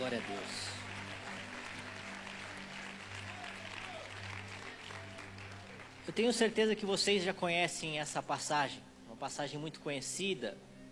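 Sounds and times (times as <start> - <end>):
audience clapping: 0.0 - 6.8
speech: 0.1 - 0.8, 6.1 - 10.7.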